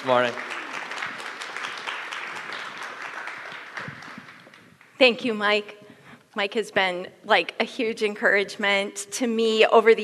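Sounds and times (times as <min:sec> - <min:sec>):
speech: 0:00.0 - 0:00.5, 0:05.0 - 0:05.8, 0:06.4 - 0:10.0
audience applause welcoming a woman to the stage at a morning gathering: 0:00.0 - 0:04.9.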